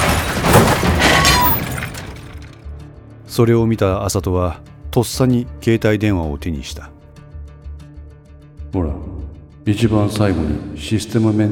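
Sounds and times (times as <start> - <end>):
SUV crashing into a gate pillar: 0.0 - 2.6
speech: 3.4 - 7.0, 8.7 - 11.5.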